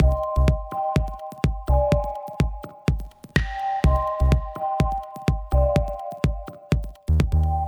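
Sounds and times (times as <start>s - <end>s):
motivating music loop: 0.0s - 7.6s.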